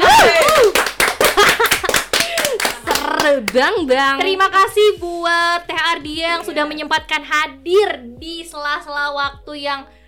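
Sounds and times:
hand clapping: 0.0 - 3.8
speech: 3.4 - 10.0.

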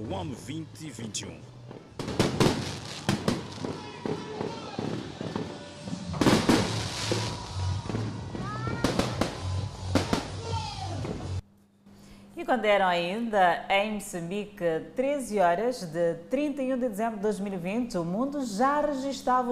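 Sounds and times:
speech: 0.0 - 2.1, 12.5 - 19.5
fireworks display: 2.0 - 10.4.

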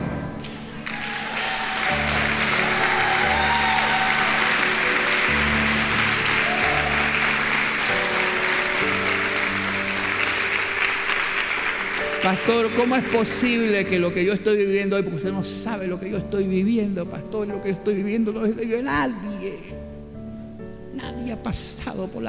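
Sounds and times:
audience applause: 0.5 - 13.9
speech: 12.3 - 19.9, 21.3 - 22.2.

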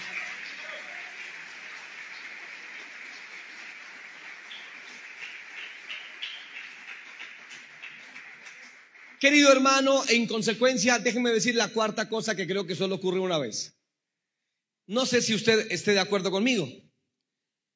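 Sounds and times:
audience applauding: 0.0 - 9.8
speech: 9.2 - 13.8, 14.9 - 16.8.

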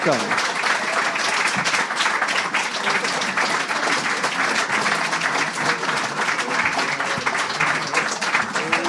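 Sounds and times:
audience applause at the Conan show: 0.0 - 8.8.

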